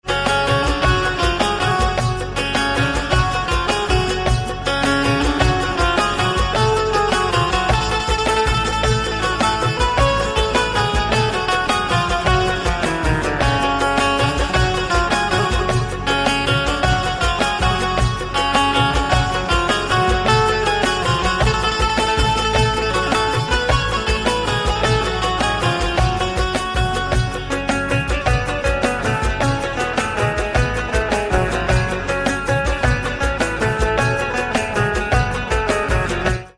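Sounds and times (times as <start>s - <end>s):
banjo: 0.0s - 36.5s.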